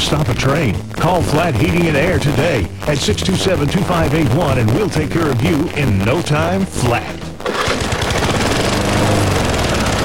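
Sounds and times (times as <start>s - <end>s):
speech: 0.1s - 7.8s
lawn mower engine running: 6.0s - 10.0s.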